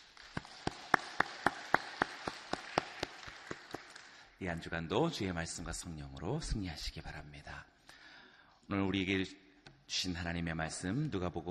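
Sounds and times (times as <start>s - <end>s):
audience clapping in unison: 0.0s - 4.4s
scattered crowd applause: 0.0s - 4.4s
speech: 4.4s - 7.7s, 8.7s - 11.4s.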